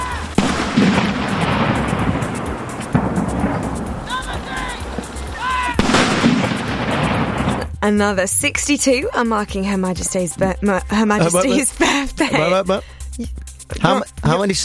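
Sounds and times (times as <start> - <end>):
ceremonial cannon of a 41-gun salute in London's Hyde Park: 0.3 - 7.7
speech: 7.8 - 14.6
laughter: 11.0 - 12.8.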